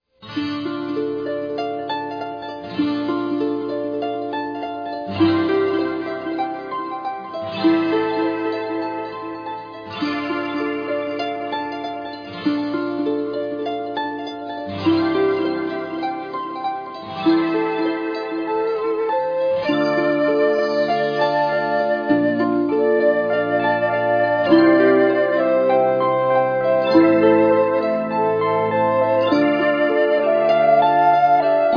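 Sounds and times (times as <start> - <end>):
pretty instrumental flute melody: 0.2 - 31.7.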